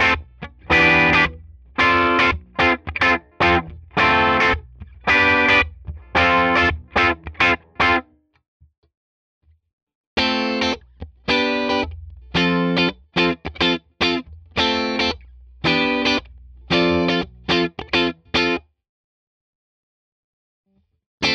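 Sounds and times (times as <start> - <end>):
Schecter Banshee Mach 7 clean guitar groove: 0.0 - 8.1, 10.2 - 18.6.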